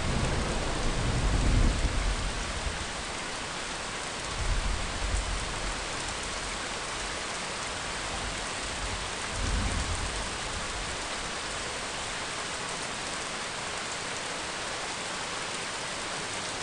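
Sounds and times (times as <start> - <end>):
thunder: 0.0 - 2.5, 9.4 - 10.3
rain: 0.0 - 16.6.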